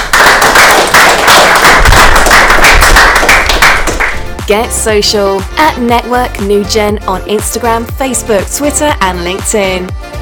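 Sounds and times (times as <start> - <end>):
audience applause: 0.0 - 4.3
speech: 4.5 - 10.0.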